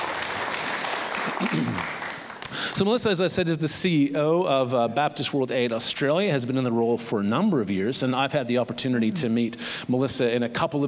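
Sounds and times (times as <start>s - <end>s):
audience applause welcoming a guest on stage: 0.0s - 3.2s
speech: 1.2s - 10.8s.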